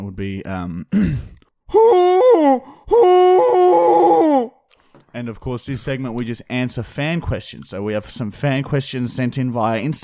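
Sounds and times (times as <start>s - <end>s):
speech: 0.2s - 4.5s, 5.2s - 10.0s
person imitating a llama chased by a wolf: 1.7s - 4.6s.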